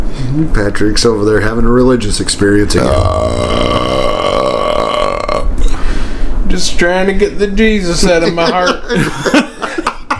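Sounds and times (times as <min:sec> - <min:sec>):
speech: 0:00.4 - 0:03.9, 0:06.6 - 0:09.5
loud burp: 0:02.7 - 0:05.8
laughter: 0:08.0 - 0:10.1.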